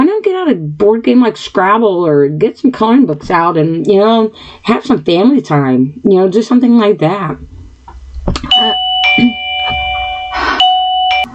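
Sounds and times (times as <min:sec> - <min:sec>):
speech: 0:00.3 - 0:07.5, 0:08.2 - 0:09.4
electronic doorbell two-tone chimes: 0:08.5 - 0:11.3.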